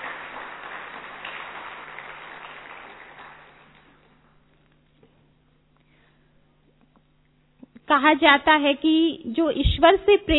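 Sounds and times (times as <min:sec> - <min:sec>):
audience applause greeting an honoured female speaker: 0:00.0 - 0:04.2
speech: 0:07.9 - 0:10.3.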